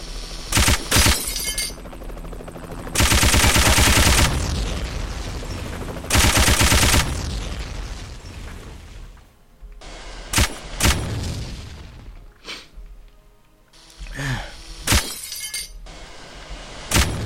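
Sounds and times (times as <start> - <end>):
machine gun fire: 0.5 - 1.8, 3.0 - 4.6, 6.1 - 7.2, 10.3 - 11.3, 14.8 - 15.2, 15.9 - 17.2.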